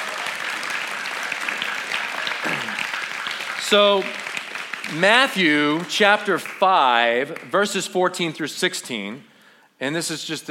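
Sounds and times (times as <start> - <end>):
audience clapping: 0.0 - 7.8
speech: 3.7 - 4.2, 4.9 - 10.4.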